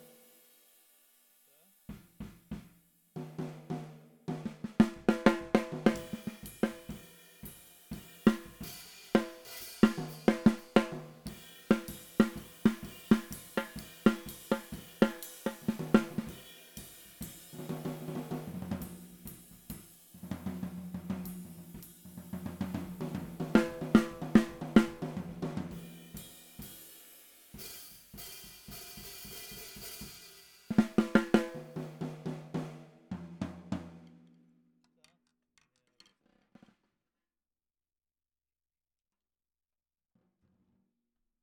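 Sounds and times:
snare drum: 1.9s - 34.4s.

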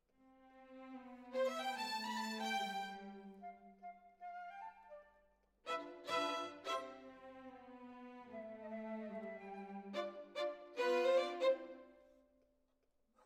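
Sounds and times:
violin solo: 0.6s - 3.6s, 5.7s - 12.0s.

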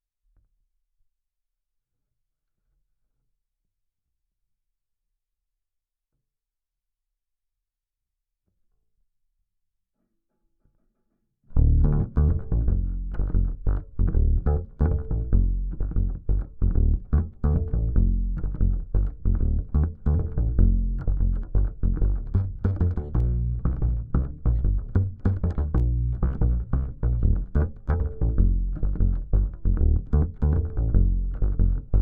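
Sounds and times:
bass guitar recorded by direct input: 11.5s - 31.9s.

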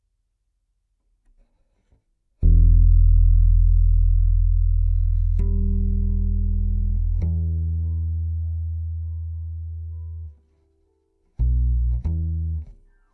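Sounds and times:
bass guitar C note through DI: 2.4s - 10.7s, 11.3s - 12.9s.

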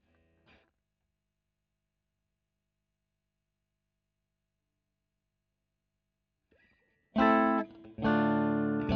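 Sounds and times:
electric guitar recorded with Royer microphone: 6.6s - 8.9s.

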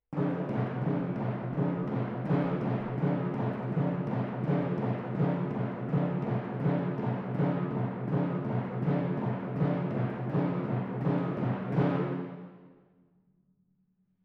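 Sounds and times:
timpani: 0.1s - 12.8s.

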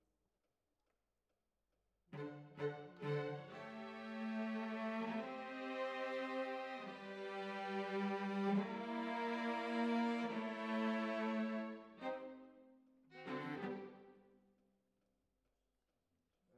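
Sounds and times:
cellos playing: 2.2s - 12.4s, 13.1s - 14.0s.

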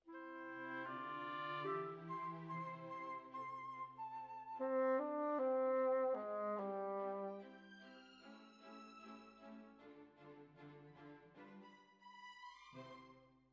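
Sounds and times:
bassoon: 0.0s - 3.7s, 4.5s - 7.6s.

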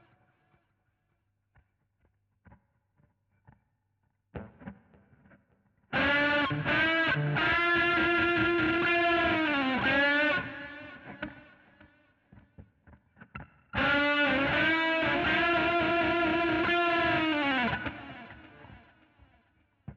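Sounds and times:
guitar solo: 5.9s - 11.6s, 13.8s - 18.9s.

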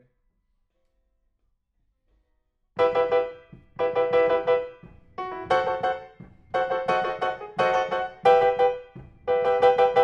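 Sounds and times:
piano: 2.8s - 10.0s.

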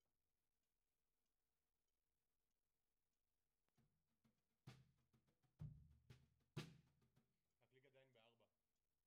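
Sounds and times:
tom drum: 5.6s - 7.1s.

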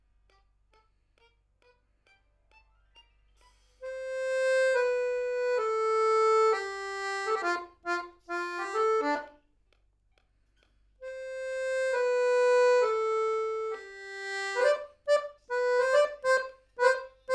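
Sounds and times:
accordion: 3.8s - 9.4s, 11.0s - 17.3s.

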